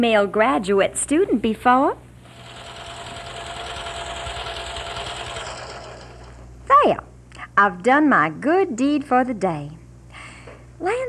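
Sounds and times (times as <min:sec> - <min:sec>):
speech: 0:00.0 - 0:02.0, 0:06.8 - 0:09.8, 0:10.8 - 0:11.0
sewing machine running: 0:02.2 - 0:06.5.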